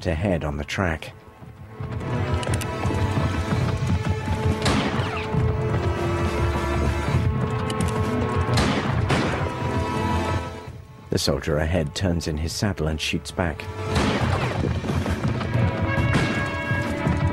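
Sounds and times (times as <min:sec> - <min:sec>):
speech: 0:00.0 - 0:01.2, 0:11.2 - 0:14.0
horse galloping off through trees: 0:01.1 - 0:10.0, 0:13.6 - 0:17.3.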